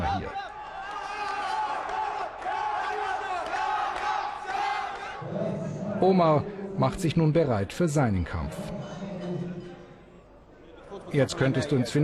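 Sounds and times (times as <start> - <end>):
crowd cheering at boxing match: 0.0 - 6.7
speech: 6.0 - 9.0, 11.1 - 12.0.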